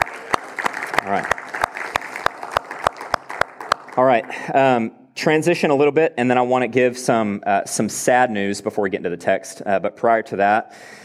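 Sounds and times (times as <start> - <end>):
audience clapping: 0.0 - 4.5
speech: 1.0 - 1.4, 4.0 - 11.0.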